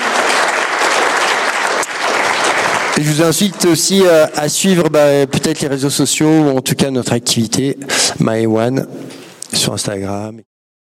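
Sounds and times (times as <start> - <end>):
audience applause: 0.0 - 4.4
speech: 3.0 - 10.5.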